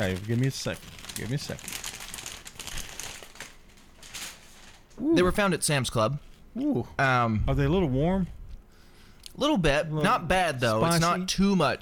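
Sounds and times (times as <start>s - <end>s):
speech: 0.0s - 1.9s, 5.0s - 8.4s, 9.4s - 11.7s
kettle-cooked potato chips being chewed: 0.0s - 4.4s.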